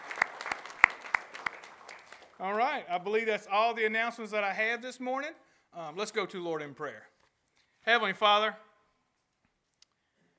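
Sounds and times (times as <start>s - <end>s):
audience applause: 0.0s - 2.8s
speech: 2.4s - 7.1s, 7.8s - 8.7s.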